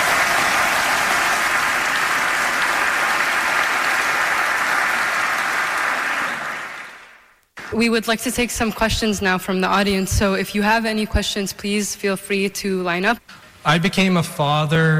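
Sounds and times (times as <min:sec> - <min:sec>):
audience applause: 0:00.0 - 0:07.3
speech: 0:07.7 - 0:14.9.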